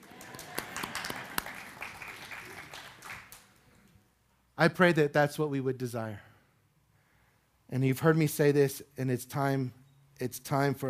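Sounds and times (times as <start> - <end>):
audience applause: 0.0 - 3.6
speech: 4.6 - 6.3, 7.7 - 10.8.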